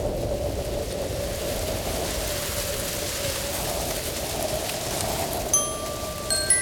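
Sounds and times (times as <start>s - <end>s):
wind blowing through trees: 0.1s - 6.6s.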